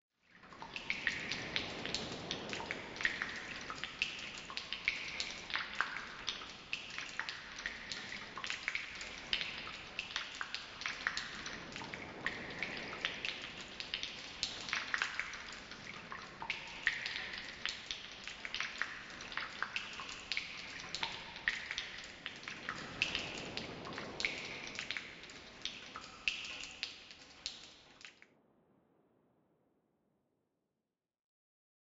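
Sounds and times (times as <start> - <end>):
cave ambience: 0.3 - 29.7.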